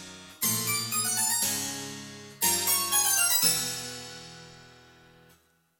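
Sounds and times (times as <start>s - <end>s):
tone: 0.5s - 1.7s, 2.6s - 3.9s.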